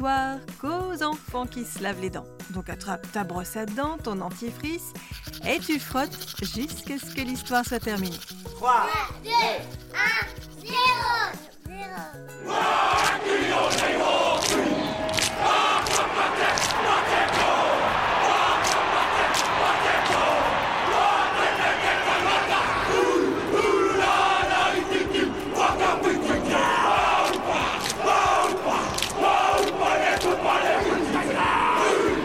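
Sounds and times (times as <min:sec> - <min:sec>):
speech: 0:00.0 - 0:16.6
group chanting Maori haka: 0:04.9 - 0:32.2
hand claps: 0:12.9 - 0:21.7, 0:27.2 - 0:30.8
slaps on thighs: 0:13.0 - 0:17.5.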